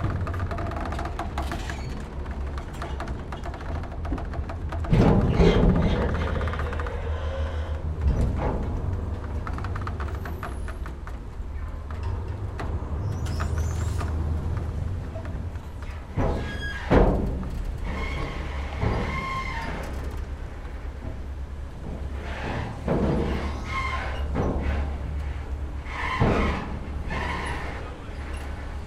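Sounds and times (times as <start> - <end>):
ferry pulling into dock: 0.0 - 28.8.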